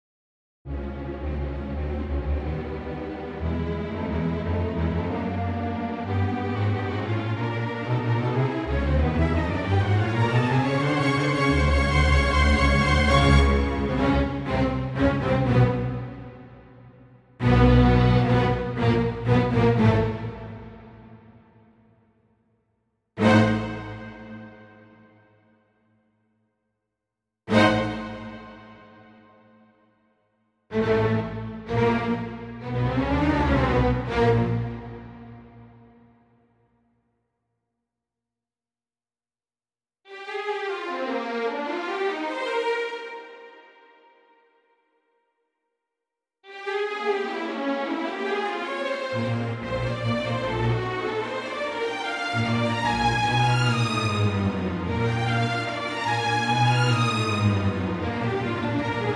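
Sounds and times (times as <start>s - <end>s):
strings: 0.7s - 21.6s, 23.2s - 24.8s, 27.5s - 29.1s, 30.7s - 35.9s, 40.1s - 44.0s, 46.5s - 59.1s.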